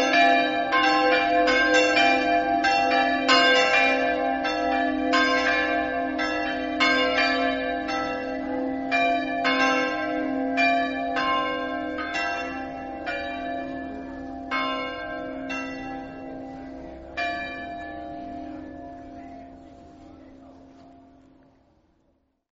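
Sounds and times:
bells ringing: 0.0 - 21.4
murmur of voices: 18.2 - 22.1.

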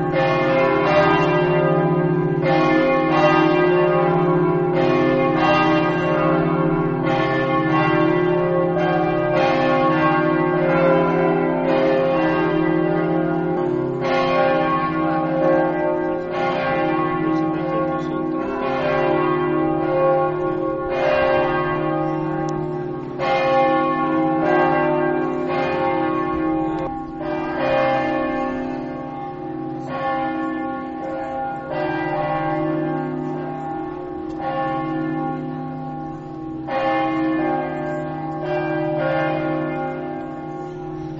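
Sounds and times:
church bells ringing in Cividale: 0.0 - 41.1.

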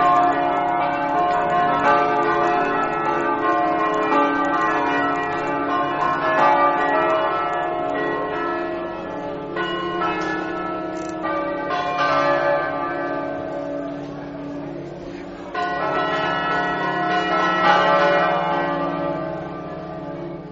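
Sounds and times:
church bells ringing: 0.0 - 20.5.

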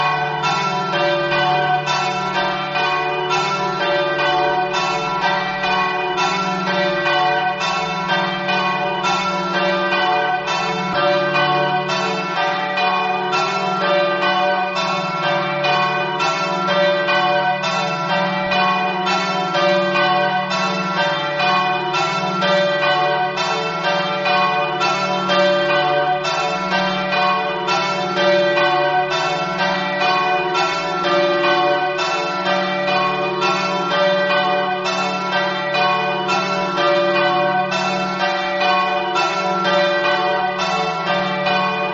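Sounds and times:
bells ringing: 0.0 - 41.9.

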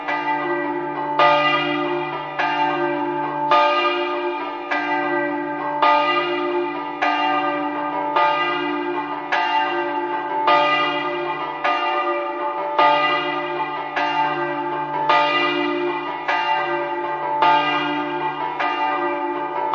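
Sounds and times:
church bells ringing: 0.0 - 19.7.

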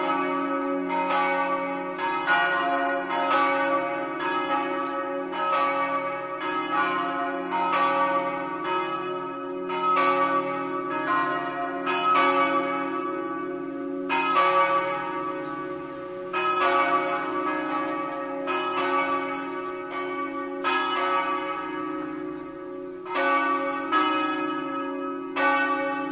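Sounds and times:
bells: 0.0 - 26.1.

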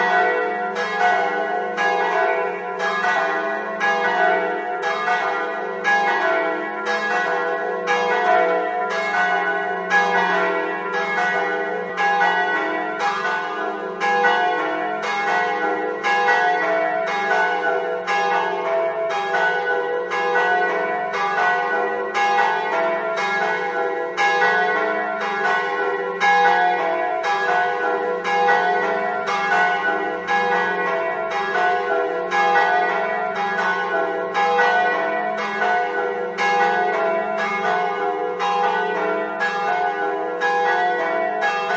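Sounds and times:
bells ringing in Prepotto: 0.0 - 41.7.

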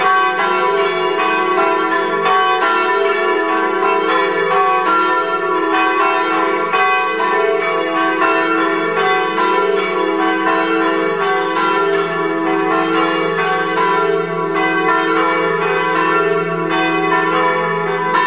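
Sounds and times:
bells ringing: 0.0 - 18.2.

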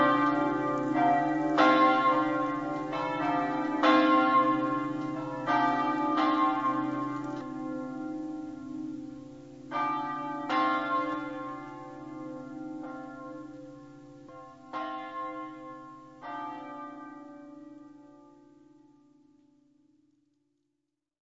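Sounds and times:
bells ringing in Artegna: 0.0 - 13.3.

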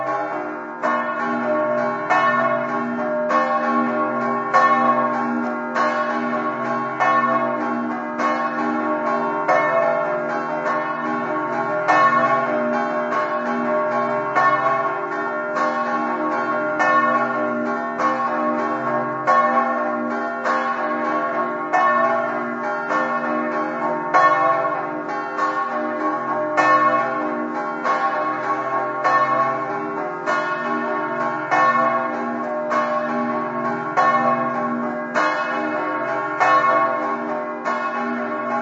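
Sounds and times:
church bells ringing in Resia: 0.0 - 38.6.

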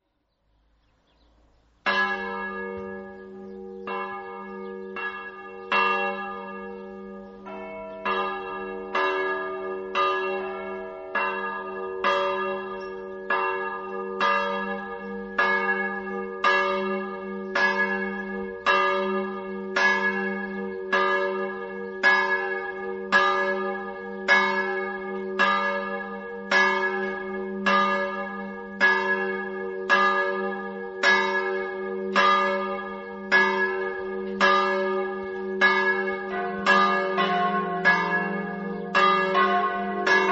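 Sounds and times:
bells ringing: 1.9 - 40.3.

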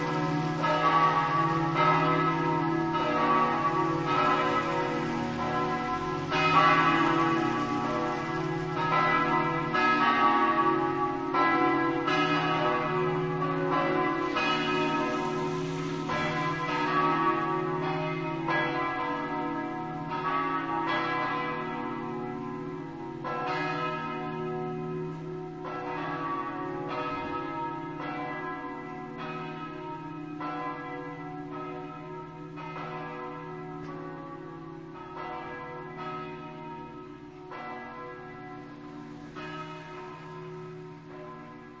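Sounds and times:
bells in Venzone: 0.0 - 41.7.

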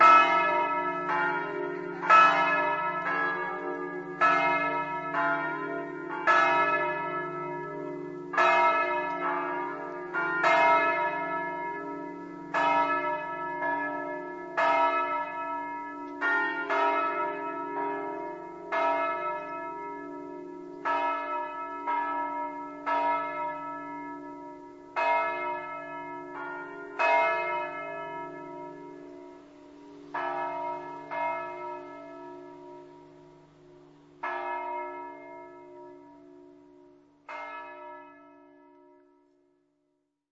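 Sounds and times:
bells ringing in Staranzano: 0.0 - 38.8.

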